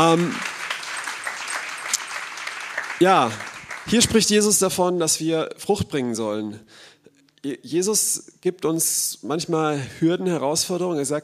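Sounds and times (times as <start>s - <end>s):
speech: 0.0s - 0.5s, 3.0s - 11.2s
big applause: 0.0s - 4.9s.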